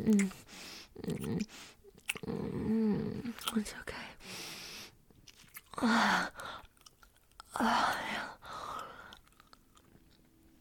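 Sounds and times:
gum chewing with wet smacking: 0.0 - 3.7, 5.1 - 7.6, 8.5 - 10.5
speech: 0.0 - 4.4, 5.8 - 6.6, 7.6 - 8.3
breathy whispering: 3.2 - 4.2.

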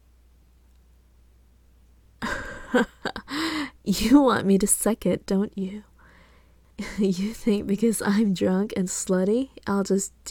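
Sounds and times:
speech: 2.7 - 2.9, 3.9 - 5.9, 6.8 - 10.2
heavy breathing from exertion: 3.3 - 3.8, 6.0 - 6.6.

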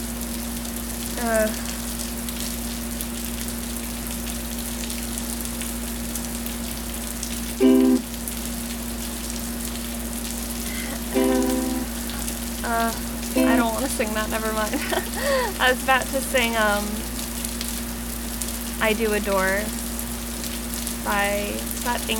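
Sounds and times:
rainstorm: 0.0 - 22.1
speech: 1.2 - 1.8, 13.9 - 17.0, 18.8 - 19.8, 21.0 - 22.1.

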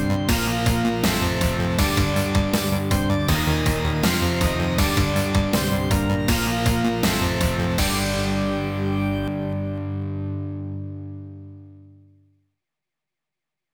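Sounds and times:
boss battle game music: 0.0 - 9.8.

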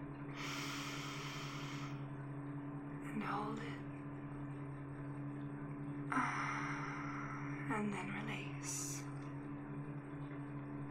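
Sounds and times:
constant low hum: 0.0 - 10.9
slow inhale through the nose: 0.4 - 2.0
speech: 3.2 - 3.9.

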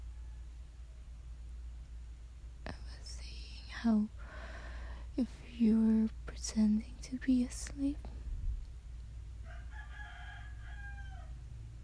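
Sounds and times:
rooster crowing: 0.0 - 0.6, 9.4 - 11.7
steady low hum: 0.0 - 9.7
speech: 3.8 - 4.2, 5.2 - 8.2.

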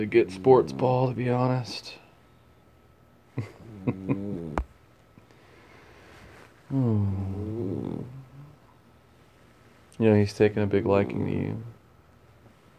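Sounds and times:
speech: 0.0 - 2.0, 3.4 - 4.7, 6.7 - 8.2, 10.0 - 11.7
pet snoring: 3.6 - 4.6, 6.8 - 8.6.

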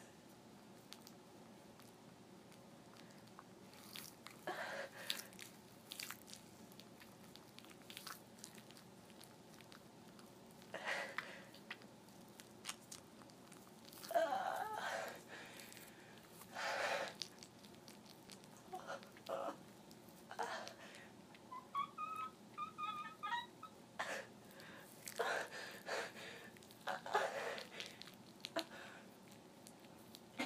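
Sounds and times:
squishy sounds: 0.8 - 20.8, 24.5 - 25.5, 26.5 - 30.4
squeaks: 21.5 - 23.8
really loud moans: 21.5 - 24.2.

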